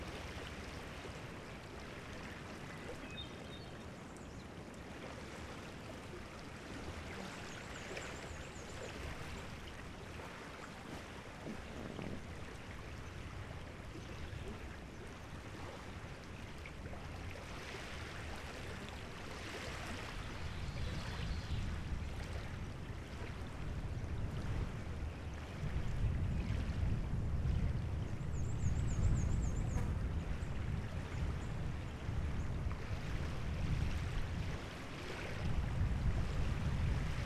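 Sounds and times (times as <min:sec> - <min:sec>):
lake waves in Wisconsin: 0:00.0 - 0:37.2.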